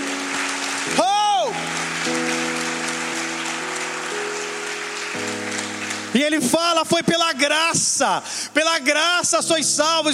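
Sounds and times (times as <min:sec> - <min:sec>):
audience applause: 0:00.0 - 0:06.6
speech: 0:06.2 - 0:10.1.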